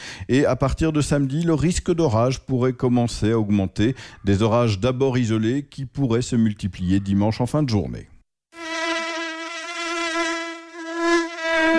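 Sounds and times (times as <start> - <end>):
speech: 0.3 - 8.1
buzzing insect: 8.5 - 11.7.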